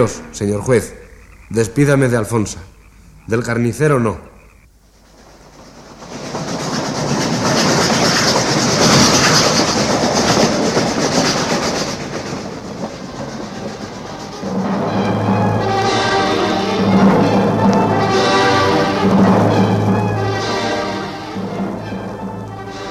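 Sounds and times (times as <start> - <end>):
speech: 0.0 - 2.7, 3.3 - 4.3
train rolling along the tracks with rumble and clickety-clack: 5.0 - 22.8.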